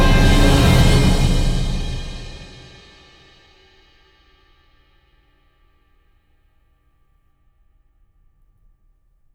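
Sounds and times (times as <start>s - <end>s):
requiem without choir: 0.0s - 2.8s.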